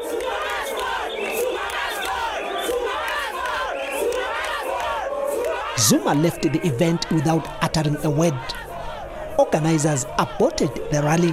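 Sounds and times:
crowd of workers singing and chanting at a May Day rally in Bloemfontein: 0:00.0 - 0:11.3
speech: 0:05.8 - 0:08.6, 0:09.4 - 0:11.3.

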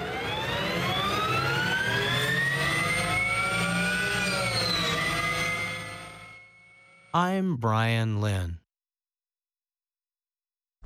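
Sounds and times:
Harley-Davidson electric motorcycle electronic whine: 0:00.0 - 0:07.1
speech: 0:07.2 - 0:08.6.

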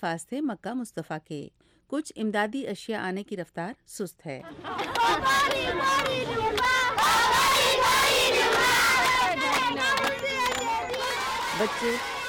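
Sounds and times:
speech: 0:00.0 - 0:07.5, 0:11.6 - 0:12.2
children singing celebratory songs: 0:04.5 - 0:12.2.

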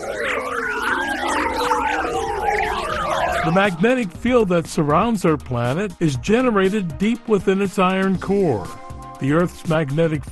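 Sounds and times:
sonified solar wind particles hitting Earth's foreshock, warbling whistles: 0:00.0 - 0:04.4
speech: 0:03.4 - 0:10.3.

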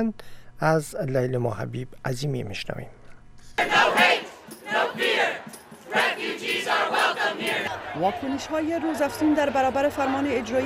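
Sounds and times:
speech: 0:00.0 - 0:03.8, 0:07.2 - 0:10.6
protest crowd shouting slogans: 0:03.6 - 0:10.6.

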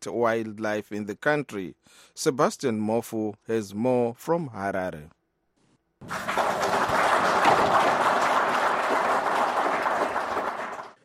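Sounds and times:
speech: 0:00.0 - 0:05.2, 0:06.0 - 0:06.9
Zimbabwean officials applauding: 0:06.0 - 0:11.0.

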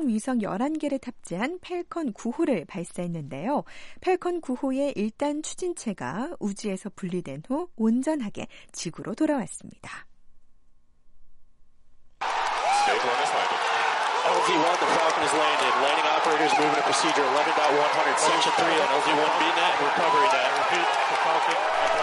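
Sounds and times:
speech: 0:00.0 - 0:10.1, 0:14.3 - 0:22.0
SpaceX staff cheering at rocket landing: 0:12.2 - 0:22.0.

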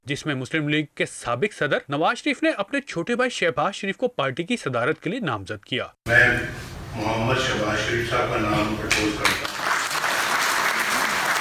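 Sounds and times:
speech: 0:00.1 - 0:09.5
participants applauding at a Pakistan Muslim League party meeting: 0:08.9 - 0:11.3.

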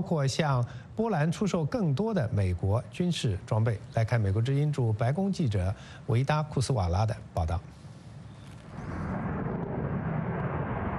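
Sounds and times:
speech: 0:00.0 - 0:07.8
F-35 fighter jet roaring over the White House: 0:08.7 - 0:10.9.

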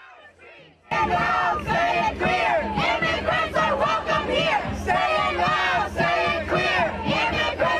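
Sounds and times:
protesters chanting at a DACA demonstration: 0:00.0 - 0:07.7.

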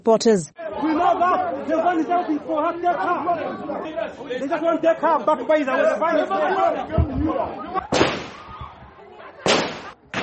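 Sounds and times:
speech: 0:00.0 - 0:00.6, 0:01.6 - 0:08.2
gunshots fired into the air by prison officials: 0:07.9 - 0:08.6, 0:09.4 - 0:10.2.

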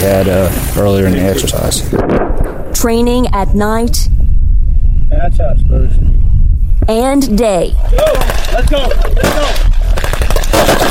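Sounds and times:
speech: 0:00.0 - 0:04.2, 0:05.1 - 0:06.2, 0:06.9 - 0:09.8, 0:10.6 - 0:10.8
gunfire: 0:01.9 - 0:02.8, 0:08.0 - 0:10.8.

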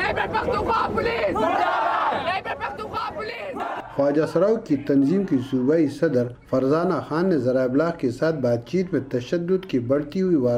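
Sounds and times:
protesters chanting slogans against the government in Peshawar: 0:00.0 - 0:05.6
scattered crowd chatter: 0:00.0 - 0:10.2
speech: 0:00.1 - 0:01.8, 0:03.2 - 0:10.5.

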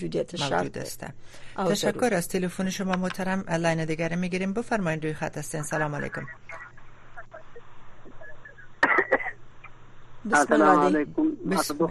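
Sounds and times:
speech: 0:00.0 - 0:06.7, 0:10.2 - 0:11.9
caller coughing on a phone-in line: 0:08.8 - 0:09.4.

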